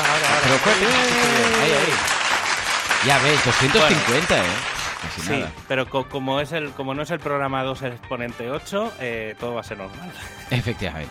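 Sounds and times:
loud applause: 0.0s - 5.6s
speech: 0.5s - 2.2s, 3.0s - 11.1s
laughter: 3.3s - 4.5s.

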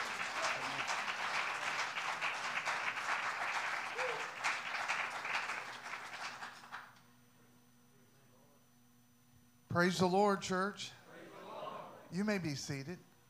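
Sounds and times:
audience applause: 0.0s - 6.9s
speech: 9.8s - 11.0s, 12.1s - 13.1s.

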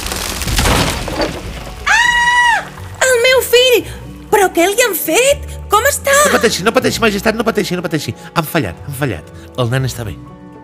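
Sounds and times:
heavy stone smashing a wooden cradle: 0.0s - 3.0s
speech: 4.6s - 10.4s.

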